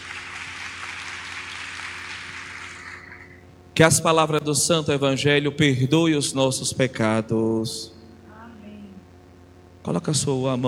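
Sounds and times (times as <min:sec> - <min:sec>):
applause from many hands: 0:00.0 - 0:03.4
speech: 0:03.8 - 0:08.0, 0:09.8 - 0:10.6.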